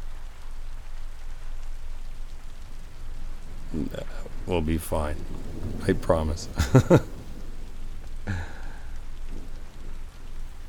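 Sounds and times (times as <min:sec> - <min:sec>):
rain storm: 0:00.0 - 0:10.6
speech: 0:03.7 - 0:07.1
laughter: 0:06.4 - 0:07.2.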